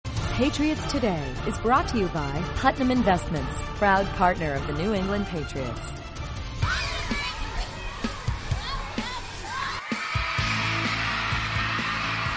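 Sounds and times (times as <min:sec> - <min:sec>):
speech: 0:00.4 - 0:06.0
excited crowd in a gymnasium: 0:06.6 - 0:12.3.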